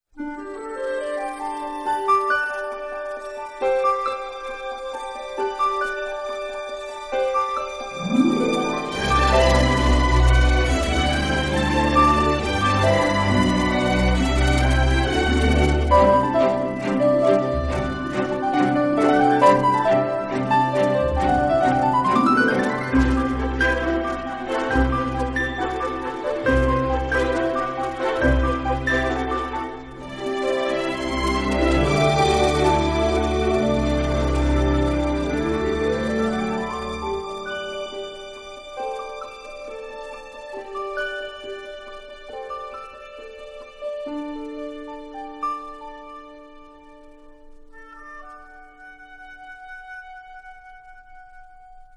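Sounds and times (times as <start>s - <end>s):
instrumental music: 0.1s - 51.9s.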